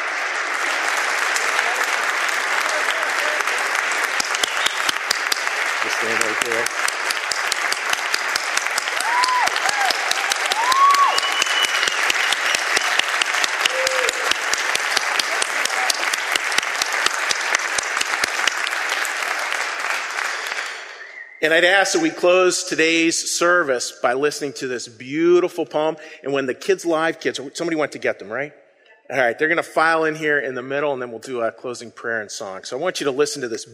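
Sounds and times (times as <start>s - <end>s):
audience round of applause: 0.0s - 22.5s
speech: 6.0s - 6.9s, 21.4s - 33.7s.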